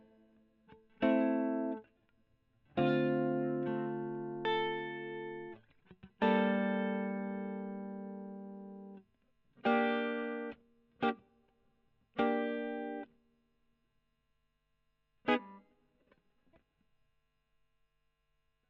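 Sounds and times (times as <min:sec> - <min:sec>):
electric guitar: 0:00.0 - 0:09.0, 0:09.6 - 0:11.3, 0:12.1 - 0:13.1, 0:15.2 - 0:16.6.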